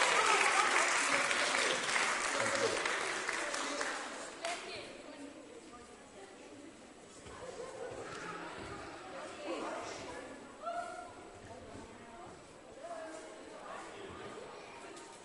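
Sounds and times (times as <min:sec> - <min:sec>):
audience applause and cheering: 0:00.0 - 0:04.1.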